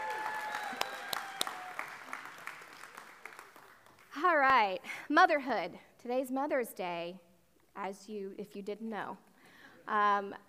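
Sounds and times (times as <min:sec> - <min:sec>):
audience applause: 0:00.0 - 0:04.1
speech: 0:04.2 - 0:10.4.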